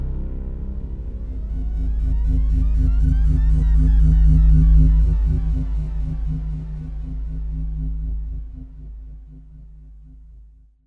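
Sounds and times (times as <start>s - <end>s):
electronic drone: 0.0s - 10.1s.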